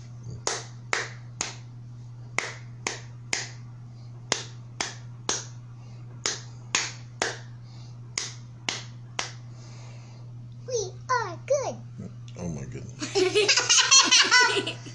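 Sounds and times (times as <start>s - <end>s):
steady low hum: 0.0s - 14.9s
person clapping a rhythmic pattern: 0.3s - 1.7s, 2.3s - 3.7s, 4.3s - 5.6s, 6.2s - 9.4s
laughter: 13.0s - 14.9s.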